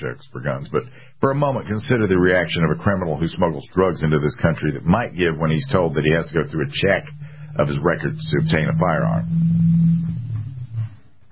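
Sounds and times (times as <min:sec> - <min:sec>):
speech: 0:00.0 - 0:10.2
high-performance car driving past the studio: 0:05.4 - 0:11.2.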